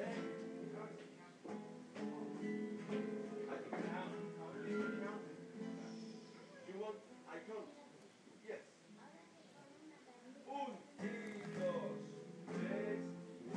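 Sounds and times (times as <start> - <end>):
flamenco guitar lesson in Las Alpujarras Spain: 0.0 - 6.8, 10.9 - 13.5.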